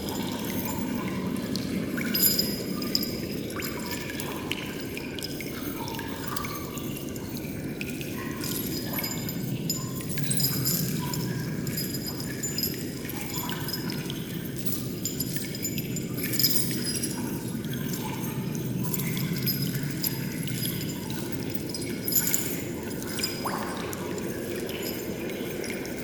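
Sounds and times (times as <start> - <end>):
water drips in a dungeon: 0.0 - 26.0
wind in a dungeon: 0.0 - 26.0
dungeon chains rattling: 2.1 - 3.7, 8.6 - 26.0.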